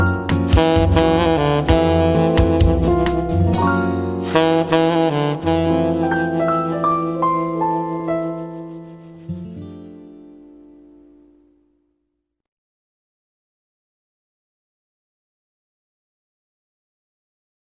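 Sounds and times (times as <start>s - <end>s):
Latino saxophone melody: 0.0s - 9.4s.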